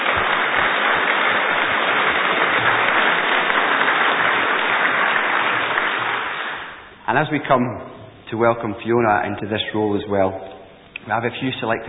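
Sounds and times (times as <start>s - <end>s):
audience applause: 0.0s - 7.0s
speech: 7.1s - 11.8s.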